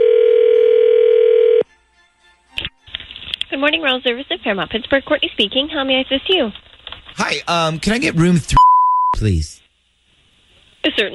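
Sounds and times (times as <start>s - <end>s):
telephone ringing tone: 0.0s - 1.6s
speech: 3.6s - 6.6s, 7.2s - 9.6s, 10.8s - 11.1s.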